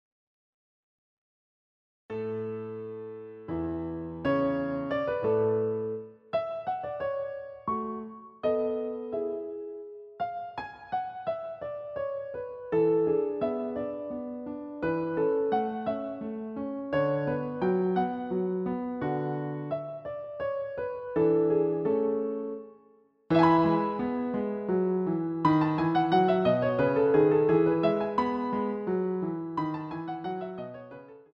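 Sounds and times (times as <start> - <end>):
piano sonata minuet in A major: 2.1 - 31.3.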